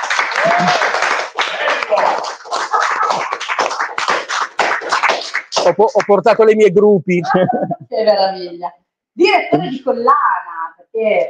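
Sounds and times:
people whooping: 0:00.0 - 0:03.3
audience applause: 0:00.0 - 0:06.4
laughter: 0:00.4 - 0:03.9, 0:07.1 - 0:08.0
speech: 0:05.6 - 0:10.4, 0:11.0 - 0:11.2.

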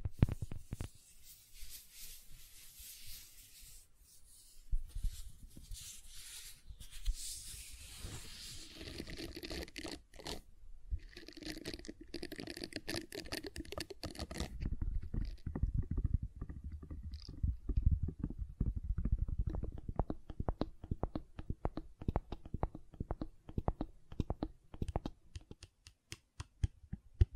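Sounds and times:
brighter hissing smearing texture: 0:00.2 - 0:10.4
silicone squishing and tapping: 0:11.2 - 0:27.3.

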